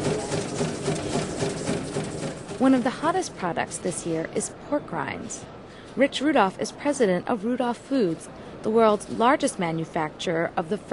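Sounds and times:
packaging machine making single-serving snack bags at a snack-food trade show: 0:00.0 - 0:03.2
speech: 0:02.6 - 0:10.9.

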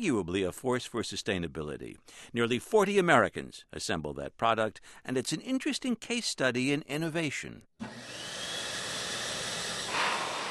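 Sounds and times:
speech: 0:00.0 - 0:08.4
electric hand dryer running: 0:07.8 - 0:10.4.

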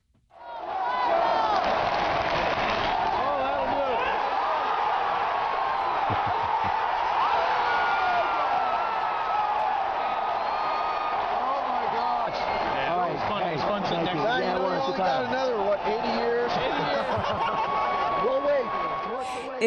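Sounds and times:
baseball stadium crowd cheering the final out: 0:00.4 - 0:19.6
crowd whistles: 0:07.2 - 0:11.6, 0:17.6 - 0:19.6
laughter: 0:16.2 - 0:18.6.

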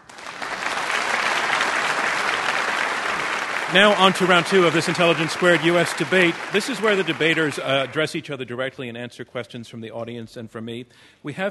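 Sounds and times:
debate audience applause: 0:00.0 - 0:08.1
speech: 0:03.7 - 0:11.4.

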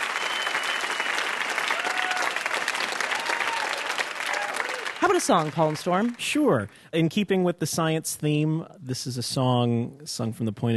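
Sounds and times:
audience applause: 0:00.0 - 0:06.7
speech: 0:05.0 - 0:10.7.

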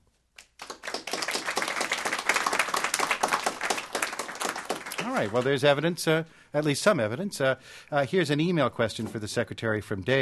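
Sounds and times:
studio audience applauding: 0:00.4 - 0:05.8
speech: 0:05.1 - 0:10.2.

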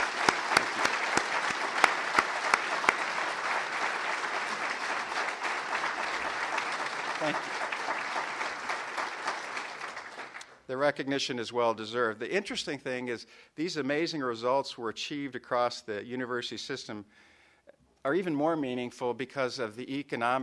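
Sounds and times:
audience applauding: 0:00.0 - 0:10.6
speech: 0:10.8 - 0:17.3, 0:18.0 - 0:20.4.

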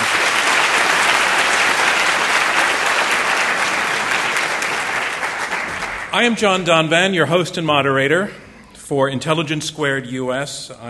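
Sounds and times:
audience applause at an evening debate event: 0:00.0 - 0:06.7
speech: 0:06.2 - 0:10.8.

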